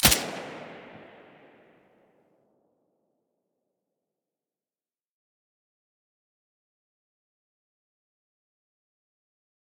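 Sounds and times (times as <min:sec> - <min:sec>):
silenced gunshot: 0:00.0 - 0:01.8.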